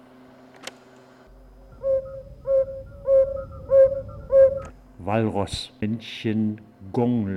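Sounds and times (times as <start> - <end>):
low hum: 0.0 - 7.3
yellow-bellied toad Bombina variegata calling: 1.7 - 4.7
speech: 5.1 - 7.3.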